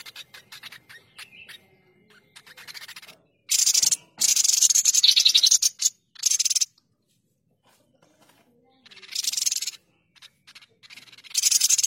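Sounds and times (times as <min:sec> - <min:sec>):
streaked spiderhunter rasping chattering song: 0:00.0 - 0:06.8, 0:07.9 - 0:11.8.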